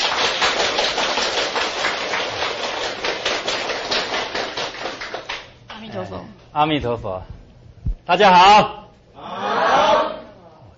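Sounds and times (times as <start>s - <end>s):
warm applause from a crowd: 0.0s - 5.5s
speech: 6.6s - 7.4s, 8.1s - 8.8s.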